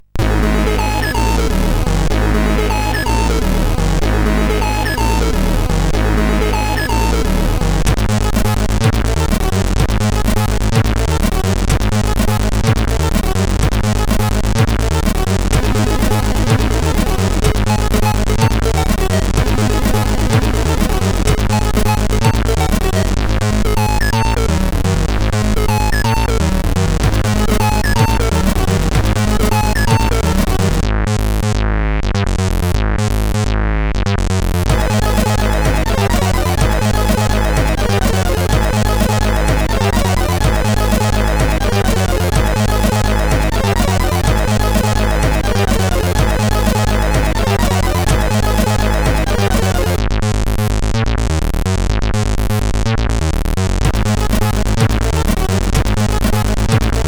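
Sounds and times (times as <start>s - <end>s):
techno beat on SID CSG8580R5 chip: 0.0s - 33.5s, 34.3s - 57.0s.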